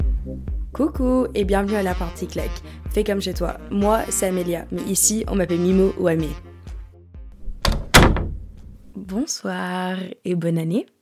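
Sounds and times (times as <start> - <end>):
speech: 0.2 - 6.5, 9.1 - 11.0
door being opened with latch clunks: 7.4 - 9.0.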